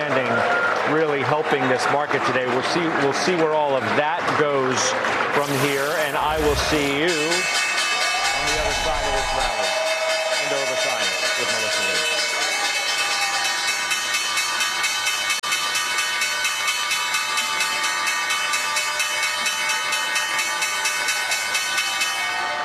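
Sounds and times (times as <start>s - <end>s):
speech: 0.2s - 7.6s, 8.8s - 9.8s
NYSE closing bells ringing: 6.0s - 22.6s.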